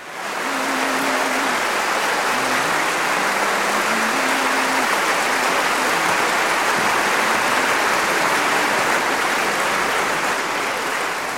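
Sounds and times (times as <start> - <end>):
concert applause: 0.0 - 11.3
baritone humming the melody: 0.3 - 9.4.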